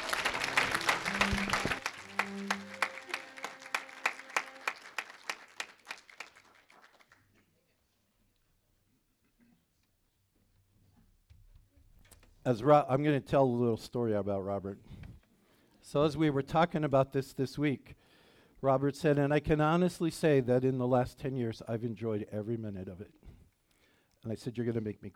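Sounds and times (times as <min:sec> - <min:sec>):
audience applause: 0:00.0 - 0:07.3
speech: 0:12.5 - 0:14.9, 0:15.9 - 0:18.0, 0:18.6 - 0:23.2, 0:24.2 - 0:25.1.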